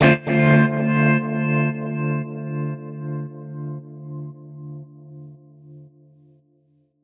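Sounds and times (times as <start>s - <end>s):
guitar chords in D: 0.0s - 4.8s.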